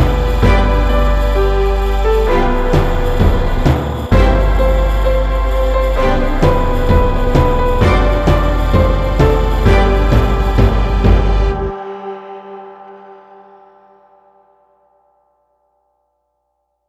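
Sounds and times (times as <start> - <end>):
orchestra playing a Christmas carol: 0.0 - 13.4.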